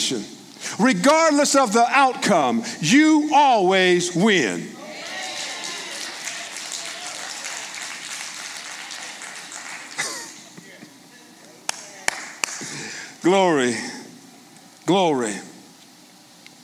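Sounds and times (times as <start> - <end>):
speech: 0.1 - 4.8, 13.2 - 13.9, 14.9 - 15.5
audience clapping: 5.0 - 10.6, 11.6 - 12.8.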